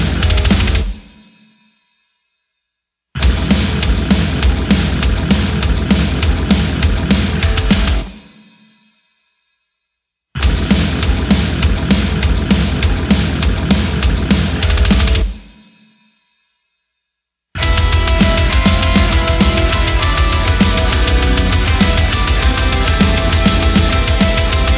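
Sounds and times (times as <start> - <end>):
instrumental metal remix: 0.0 - 1.2, 3.2 - 8.4, 10.4 - 15.5, 17.6 - 24.7.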